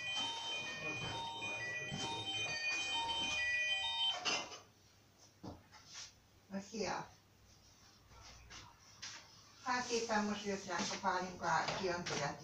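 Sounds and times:
mobile phone ringtone ringing: 0:00.0 - 0:04.6
speech: 0:06.8 - 0:07.2, 0:09.7 - 0:12.4.

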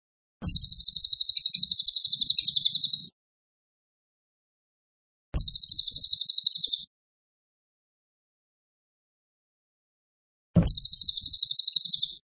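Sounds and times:
cililin singing fast shrill pulsed trills: 0:00.4 - 0:03.1, 0:05.4 - 0:06.9, 0:10.6 - 0:12.2.

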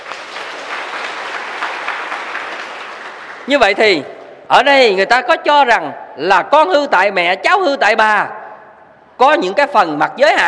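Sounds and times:
audience applause at a Buddhist lecture: 0:00.0 - 0:03.5
speech: 0:03.5 - 0:08.4, 0:09.2 - 0:10.4.

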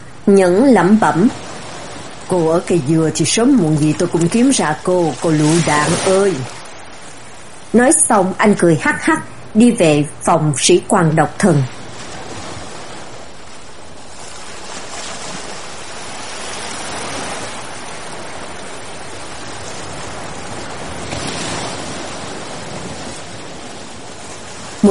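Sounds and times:
ocean waves crashing on shore: 0:00.0 - 0:24.8
speech: 0:00.3 - 0:01.4, 0:02.3 - 0:06.6, 0:07.7 - 0:11.8.

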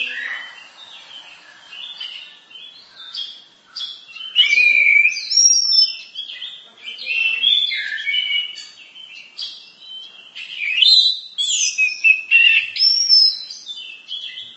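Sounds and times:
bird singing complex song of twitters, chips and swooping whistles: 0:00.0 - 0:14.5.

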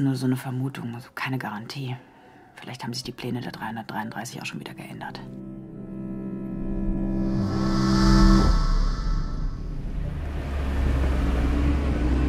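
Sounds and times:
speech: 0:00.0 - 0:05.6
car driving up: 0:07.1 - 0:12.2.

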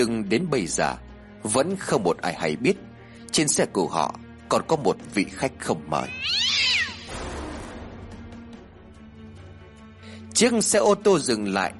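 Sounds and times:
speech: 0:00.0 - 0:06.8, 0:10.4 - 0:11.7
cat meowing inside a car: 0:06.0 - 0:07.1.

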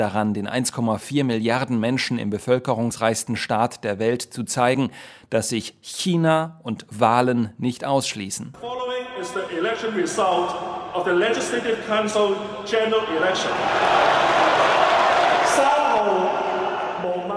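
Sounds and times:
speech: 0:00.0 - 0:14.8, 0:15.6 - 0:16.4
crowd cheering at the announcement of Hong Kong election results: 0:12.8 - 0:17.3.

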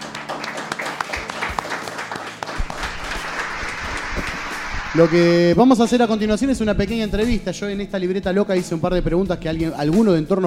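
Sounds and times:
audience applause at an acoustic music event: 0:00.0 - 0:04.9
speech: 0:04.9 - 0:10.4.

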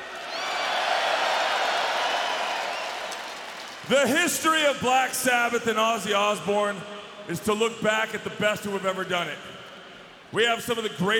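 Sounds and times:
heavy metal concert crowd cheering for a band: 0:00.0 - 0:03.9
speech: 0:03.9 - 0:09.6, 0:10.3 - 0:11.1.

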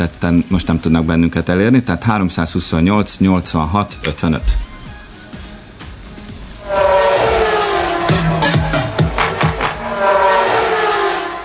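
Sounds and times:
speech: 0:00.0 - 0:04.7
Formula 1 racing car whooshing past: 0:06.6 - 0:11.4.

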